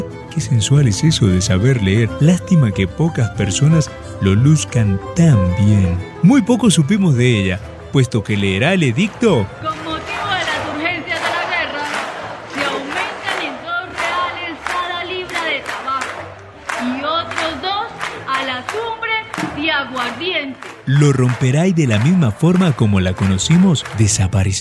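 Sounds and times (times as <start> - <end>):
speech: 0.4 - 9.9, 20.9 - 24.6
crowd clapping: 1.0 - 24.6
crowd shouting: 9.6 - 24.1.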